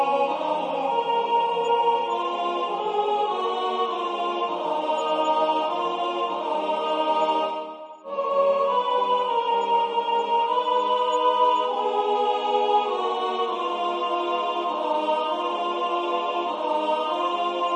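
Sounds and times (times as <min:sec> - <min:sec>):
soprano singing a hymn: 0:00.0 - 0:17.7.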